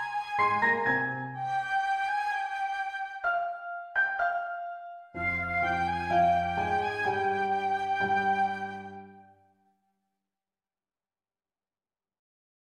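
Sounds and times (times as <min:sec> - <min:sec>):
flute: 0:00.0 - 0:09.4.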